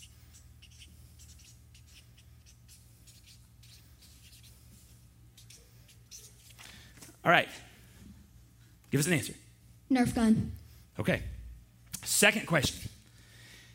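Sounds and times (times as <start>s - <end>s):
someone writing something down: 0.0s - 6.6s
speech: 7.2s - 7.7s, 8.9s - 11.3s, 12.2s - 12.9s.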